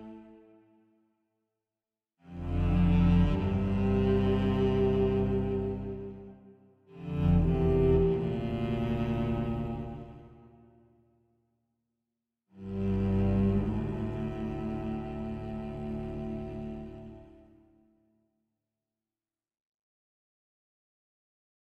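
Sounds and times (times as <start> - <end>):
cello: 0.0 - 0.7, 2.2 - 10.8, 12.6 - 17.9.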